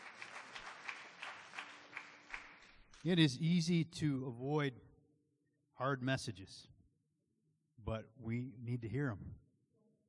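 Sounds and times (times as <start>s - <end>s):
audience applause: 0.0s - 2.8s
speech: 3.0s - 4.9s, 5.8s - 6.8s, 7.8s - 9.4s.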